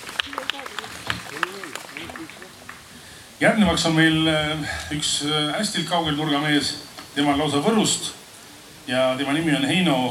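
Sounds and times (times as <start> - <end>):
scattered audience hand claps: 0.0 - 2.9
voices murmuring and talking: 0.0 - 10.0
speech: 3.4 - 8.2, 8.9 - 10.0.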